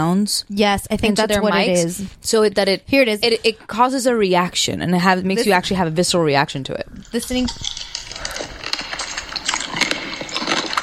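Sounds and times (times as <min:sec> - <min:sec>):
speech: 0:00.0 - 0:08.5
wet crunchy chomping on a pickle: 0:07.5 - 0:10.8.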